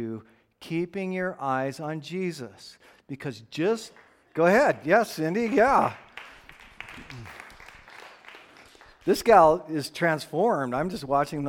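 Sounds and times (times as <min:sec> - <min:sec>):
speech: 0:00.0 - 0:06.0, 0:07.0 - 0:07.4, 0:09.0 - 0:11.4
audience clapping: 0:03.7 - 0:09.6.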